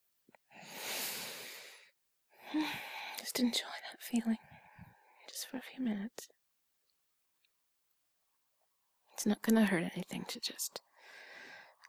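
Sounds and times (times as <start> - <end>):
slow deep breath taken for calm: 0.6 - 3.2, 11.0 - 11.8
speech: 2.5 - 4.5, 5.4 - 6.4, 9.2 - 11.2.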